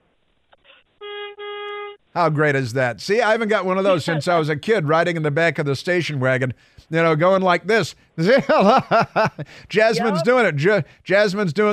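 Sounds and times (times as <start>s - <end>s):
double horn honk: 1.0s - 2.0s
speech: 2.1s - 11.7s
laughter: 8.2s - 10.3s.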